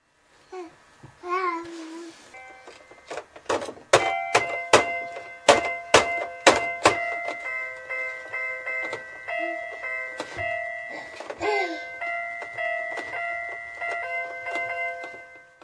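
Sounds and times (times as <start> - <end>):
keyboard playing: 2.4 - 3.2, 3.9 - 15.6.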